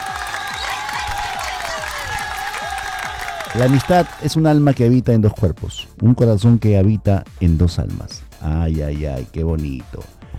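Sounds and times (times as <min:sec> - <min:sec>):
audience applause: 0:00.0 - 0:04.4
speech: 0:03.6 - 0:10.2.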